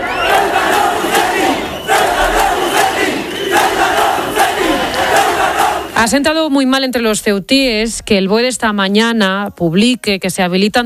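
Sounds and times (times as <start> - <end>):
protesters chanting and shouting traitor: 0.0 - 6.1
speech: 6.0 - 10.8.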